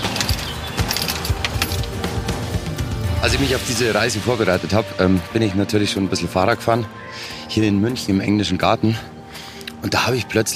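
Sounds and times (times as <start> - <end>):
keys locking the front door: 0.0 - 2.1
speech: 3.2 - 9.2, 9.8 - 10.5.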